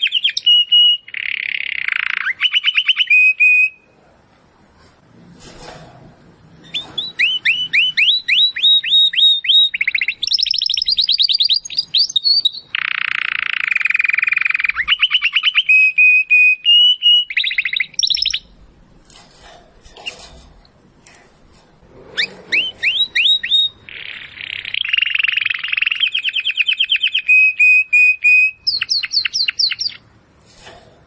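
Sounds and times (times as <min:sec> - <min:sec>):
domestic canary singing: 0:00.0 - 0:03.9, 0:06.6 - 0:18.6, 0:21.9 - 0:30.1.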